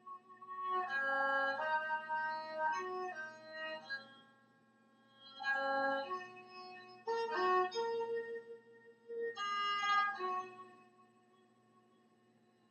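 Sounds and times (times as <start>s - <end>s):
erhu playing a hymn: 0.7s - 4.0s, 5.3s - 10.8s.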